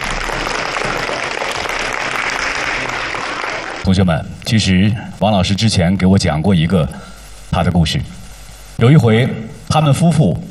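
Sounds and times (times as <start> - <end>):
applause: 0.0 - 3.9
speech: 3.9 - 8.2, 8.8 - 10.4.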